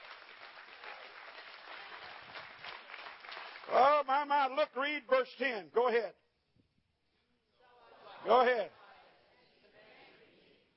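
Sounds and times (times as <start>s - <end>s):
audience clapping hands: 0.0s - 4.8s
speech: 3.7s - 6.2s, 8.2s - 8.8s.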